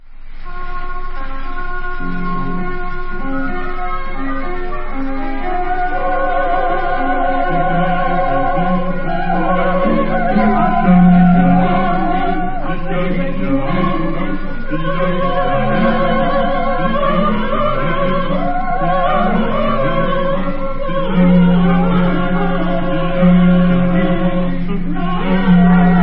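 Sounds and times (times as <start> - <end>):
instrumental music: 0.0 - 26.0.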